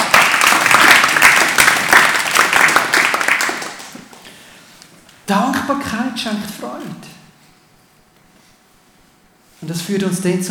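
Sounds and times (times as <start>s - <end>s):
audience applause: 0.0s - 4.2s
speech: 5.3s - 7.1s, 9.6s - 10.4s.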